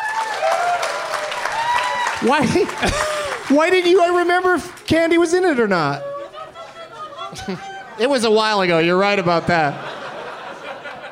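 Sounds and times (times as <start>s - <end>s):
audience applause: 0.0s - 5.2s
laughter: 2.2s - 3.6s, 5.9s - 11.1s
speech: 2.2s - 6.1s, 7.3s - 9.9s.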